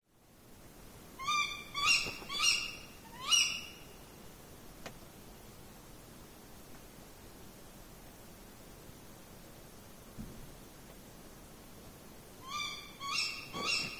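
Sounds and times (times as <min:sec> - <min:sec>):
Tawny owl hooting: 0:01.2 - 0:03.9, 0:12.4 - 0:13.9.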